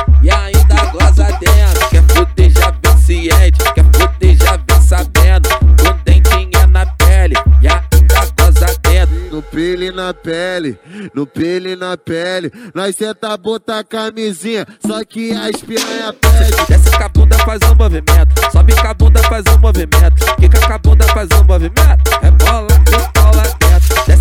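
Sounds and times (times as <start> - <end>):
funk music with heavy bass: 0.0 - 10.5, 15.4 - 24.1.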